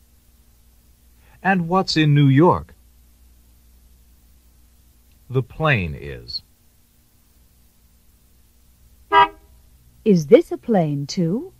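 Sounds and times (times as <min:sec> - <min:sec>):
speech: 0:01.4 - 0:02.8, 0:05.3 - 0:06.4, 0:10.0 - 0:11.5
car horn honk: 0:09.1 - 0:09.5.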